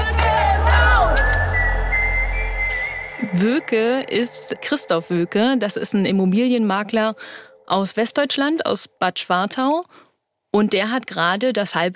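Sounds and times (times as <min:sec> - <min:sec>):
crowd chanting a protest slogan: 0:00.0 - 0:05.6
speech: 0:03.4 - 0:11.9.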